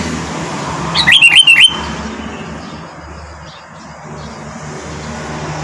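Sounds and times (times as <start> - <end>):
sooty-headed bulbul whistled notes: 1.0 - 1.9.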